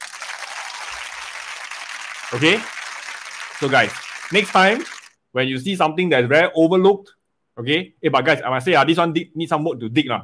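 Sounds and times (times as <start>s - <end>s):
audience applause: 0.0s - 5.2s
speech: 2.3s - 2.8s, 3.6s - 10.2s.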